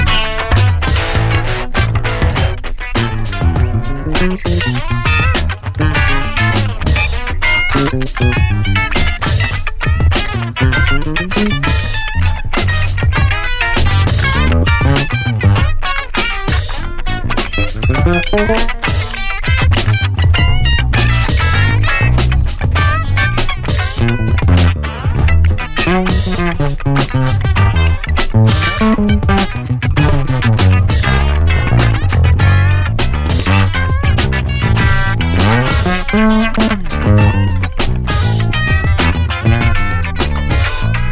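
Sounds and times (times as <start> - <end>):
retro music jam: 0.0 - 41.1.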